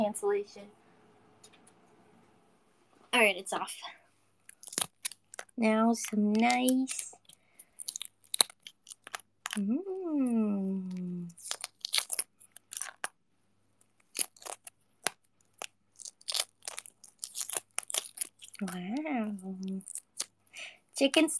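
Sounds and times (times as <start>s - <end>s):
speech: 0.0s - 0.8s, 3.1s - 4.0s, 5.6s - 7.2s, 9.6s - 11.6s, 18.6s - 20.0s, 21.0s - 21.3s
peeling a boiled egg: 4.4s - 9.7s, 10.8s - 13.2s, 13.8s - 20.4s.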